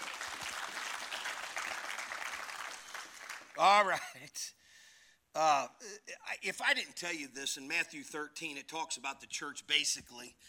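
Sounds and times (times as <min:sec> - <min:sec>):
audience applauding: 0:00.0 - 0:03.7
speech: 0:03.6 - 0:04.6, 0:05.3 - 0:10.4.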